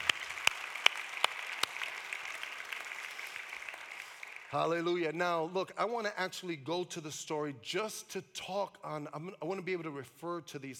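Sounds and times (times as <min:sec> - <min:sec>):
audience clapping: 0:00.0 - 0:05.0
speech: 0:04.5 - 0:10.7.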